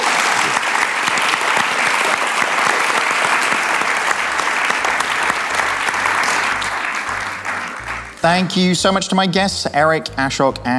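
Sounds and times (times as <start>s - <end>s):
live audience round of applause: 0.0s - 9.0s
speech: 8.2s - 10.7s.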